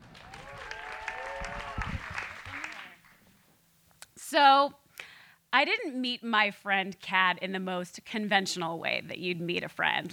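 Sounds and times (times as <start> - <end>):
people cheering: 0.0 - 3.1
audience applause at a live show: 0.0 - 3.2
speech: 4.3 - 4.8, 5.5 - 10.1.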